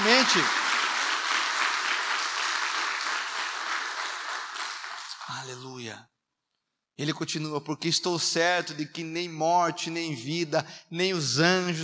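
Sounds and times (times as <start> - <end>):
audience applause: 0.0 - 5.5
speech: 0.2 - 0.6, 5.3 - 6.1, 7.0 - 11.8.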